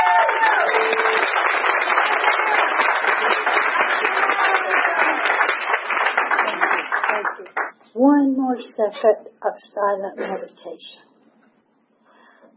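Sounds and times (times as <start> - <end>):
audience applause: 0.0 - 7.7
speech: 8.6 - 11.1.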